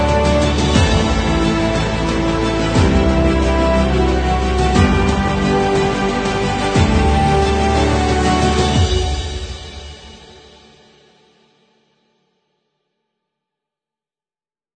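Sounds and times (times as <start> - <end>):
low piano chords: 0.0 - 9.8
bright brass notes: 0.0 - 10.3
epic orchestra: 0.0 - 10.6
powerful epic drums: 0.0 - 11.2.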